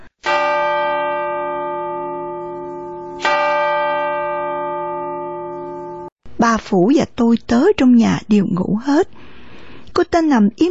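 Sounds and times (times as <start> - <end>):
clock striking ten o'clock: 0.2 - 6.1
speech: 6.4 - 9.2, 10.0 - 10.6.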